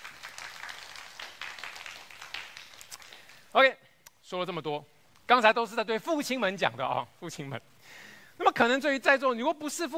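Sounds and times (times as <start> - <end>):
audience clapping hands in agreement: 0.0 - 3.5
speech: 3.6 - 9.9.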